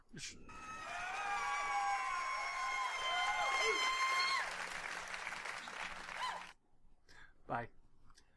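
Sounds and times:
speech: 0.1s - 0.7s, 7.5s - 7.8s
studio audience applause: 0.5s - 6.6s.

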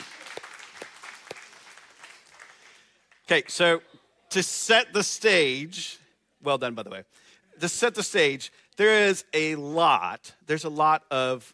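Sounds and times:
round of applause: 0.0s - 3.3s
speech: 3.3s - 11.5s.

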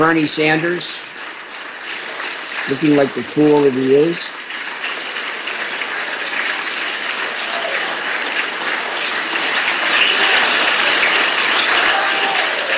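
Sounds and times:
speech: 0.0s - 1.1s, 2.6s - 4.4s
large crowd applause in a legislative chamber: 0.0s - 12.7s.

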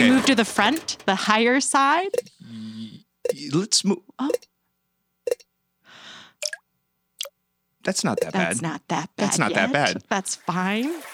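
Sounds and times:
speech: 0.0s - 2.6s, 3.4s - 4.5s, 7.9s - 11.1s
water leaking in: 10.4s - 11.1s.

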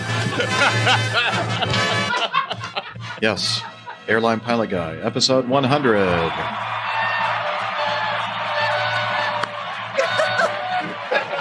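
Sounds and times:
studio audience sound effect of cheering and whoops: 0.0s - 2.9s, 5.7s - 11.3s
laughter: 0.0s - 4.5s, 9.7s - 11.3s
speech: 0.4s - 1.8s, 3.2s - 6.8s.

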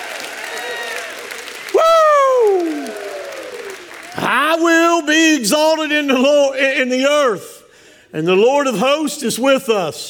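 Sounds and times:
audience applause: 0.0s - 4.6s
speech: 4.2s - 7.5s, 8.1s - 10.0s.

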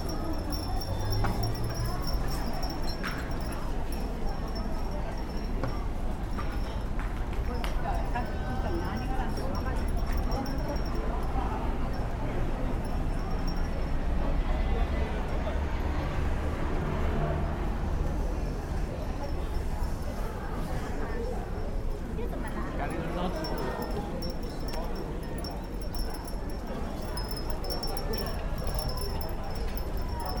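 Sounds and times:
wind chime ringing: 0.0s - 14.0s, 22.4s - 30.3s
crowd murmur near Kaminarimon in Asakusa: 0.0s - 30.3s.

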